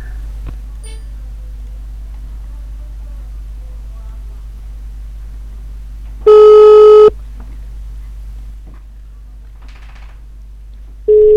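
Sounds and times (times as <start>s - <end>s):
outgoing phone call ringing: 6.3s - 7.1s, 11.1s - 11.3s.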